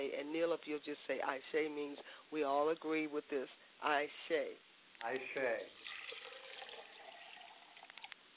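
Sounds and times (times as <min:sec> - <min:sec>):
speech: 0:00.0 - 0:05.9
liquid poured as a libation: 0:05.8 - 0:08.1.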